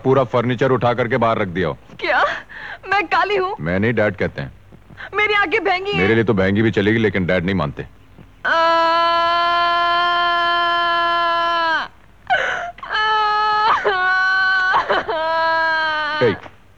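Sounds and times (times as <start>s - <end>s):
speech: 0.0s - 9.1s
person crying and sobbing: 8.5s - 16.5s.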